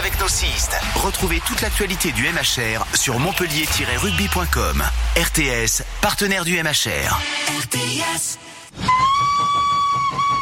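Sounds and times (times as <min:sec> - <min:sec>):
speech: 0:00.2 - 0:09.3
steam train whistle: 0:08.8 - 0:10.4.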